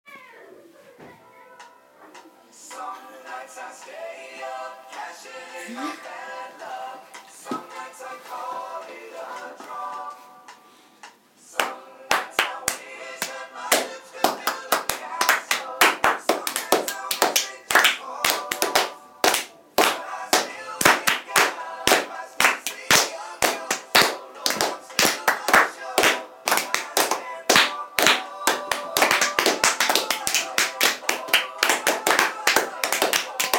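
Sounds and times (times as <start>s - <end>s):
clapping rhythm: 11.0s - 33.5s.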